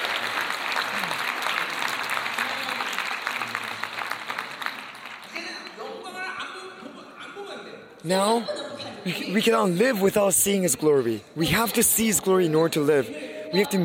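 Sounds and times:
audience applause: 0:00.0 - 0:05.8
speech: 0:08.0 - 0:13.8.

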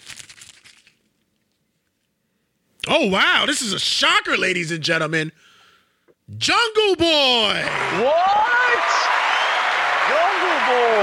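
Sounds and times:
paper envelope being torn open: 0:00.0 - 0:01.1
speech: 0:02.9 - 0:05.5, 0:06.3 - 0:09.2, 0:10.1 - 0:11.0.

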